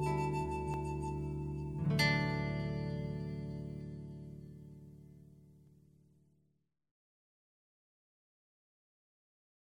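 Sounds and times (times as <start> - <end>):
piano: 0.0 - 4.8.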